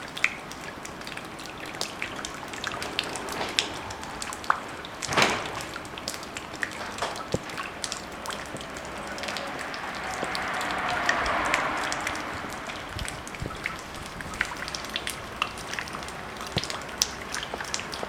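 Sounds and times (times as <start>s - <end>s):
water drops: 0.0s - 18.0s.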